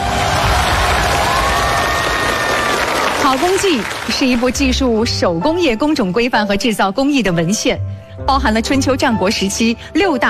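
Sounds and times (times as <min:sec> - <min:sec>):
audience applause: 0:00.0 - 0:04.6
speech: 0:03.3 - 0:10.2.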